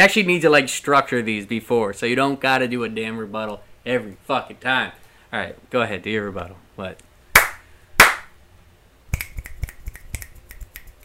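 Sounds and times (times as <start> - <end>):
speech: 0.0 - 7.1
hand slaps: 7.4 - 8.3, 9.1 - 11.0
finger snaps: 9.1 - 11.0.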